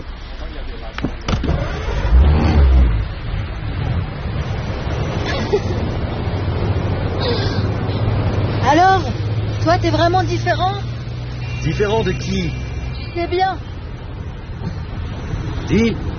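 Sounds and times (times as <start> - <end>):
sharp clicks and thumps: 0.9 - 2.1
car engine starting and revving: 1.3 - 13.0
speech: 9.8 - 10.9, 11.6 - 13.7, 15.7 - 16.1.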